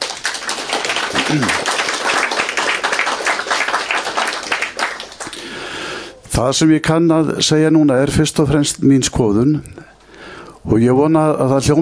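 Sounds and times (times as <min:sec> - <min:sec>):
audience applause for the winner of a blind association's election: 0:00.0 - 0:05.6
speech: 0:01.3 - 0:01.7, 0:06.4 - 0:09.9, 0:10.6 - 0:11.7.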